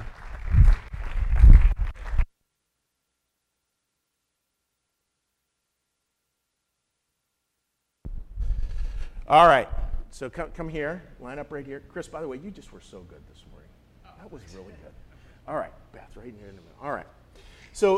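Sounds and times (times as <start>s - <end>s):
audience applause: 0.0s - 2.2s
speech: 9.3s - 13.6s, 14.2s - 17.9s.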